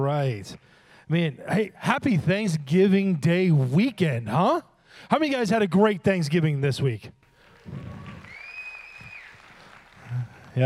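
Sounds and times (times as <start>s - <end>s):
speech: 0.0s - 7.9s
audience clapping: 7.2s - 10.6s.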